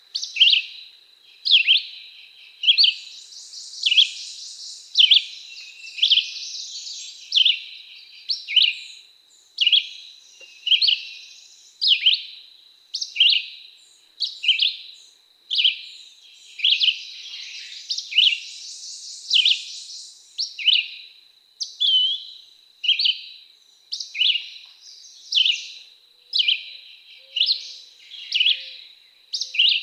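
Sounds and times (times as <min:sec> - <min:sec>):
Red-eyed Vireo: 0:00.0 - 0:29.8.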